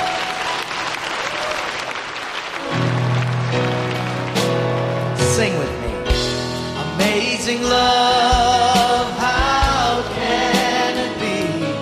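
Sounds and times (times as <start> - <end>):
audience clapping: 0.0 - 5.7
sustained organ or keyboard chords: 2.6 - 11.8.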